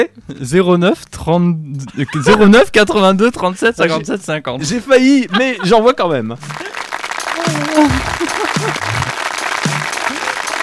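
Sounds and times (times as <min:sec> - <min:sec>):
speech: 0:00.0 - 0:08.9
laughter: 0:04.7 - 0:10.6
audience applause: 0:06.4 - 0:10.6.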